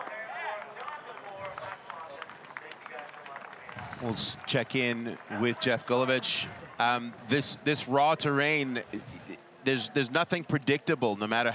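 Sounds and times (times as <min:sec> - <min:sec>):
crowd of fans cheering on a ski hill: 0:00.0 - 0:08.6
speech: 0:04.0 - 0:11.5.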